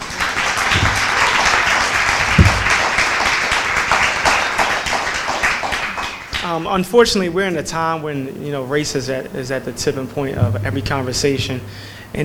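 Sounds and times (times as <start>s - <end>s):
audience applause: 0.0s - 6.6s
speech: 6.5s - 12.2s.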